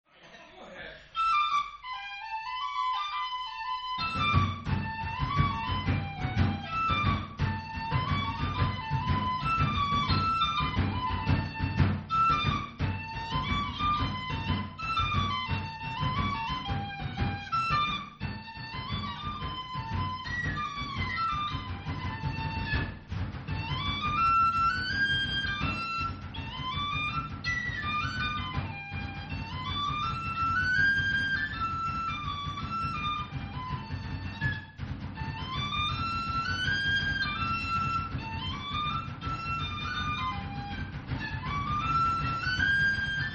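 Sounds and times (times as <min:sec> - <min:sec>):
whistle playing a hornpipe: 0:01.2 - 0:23.0, 0:23.6 - 0:43.3.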